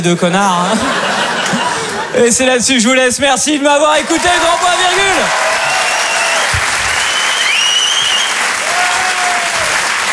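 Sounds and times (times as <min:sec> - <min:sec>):
speech: 0:00.0 - 0:01.0, 0:02.1 - 0:05.5
laughter: 0:00.3 - 0:02.4
audience applause at a live comedy club show at a Paris theatre: 0:04.0 - 0:10.1.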